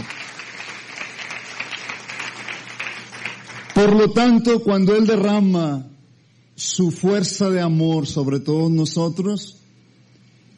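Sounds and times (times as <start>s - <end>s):
audience applause: 0.0s - 4.0s
speech: 3.8s - 5.9s, 6.6s - 9.6s.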